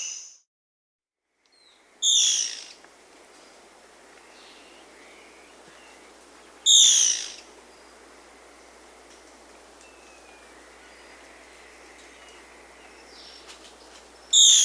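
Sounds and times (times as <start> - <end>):
Black-spotted bare-eye call of thin high whistles in the Peruvian Amazon: 1.5 - 14.6.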